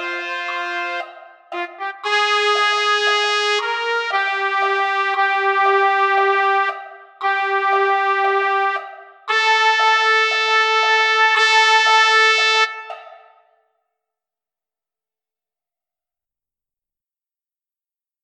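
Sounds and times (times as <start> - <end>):
trumpet: 0.0 - 13.5.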